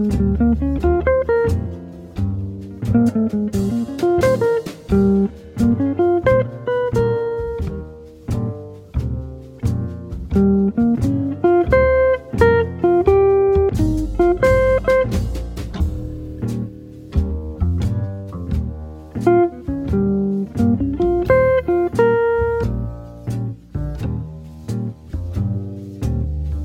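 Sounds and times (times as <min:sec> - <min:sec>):
jazz guitar playback: 0:00.0 - 0:26.6.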